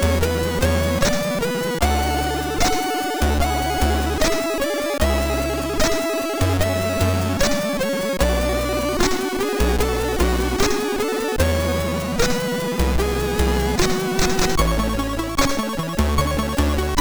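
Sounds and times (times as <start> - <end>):
MOS6581R2 hymn: 0.0 - 17.0.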